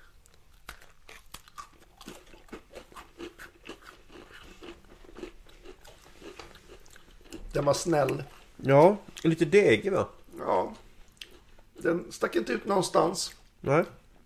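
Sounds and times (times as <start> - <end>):
crisp crunching while biting and chewing a snack: 0.0 - 7.5
speech: 7.6 - 10.8, 11.8 - 14.0.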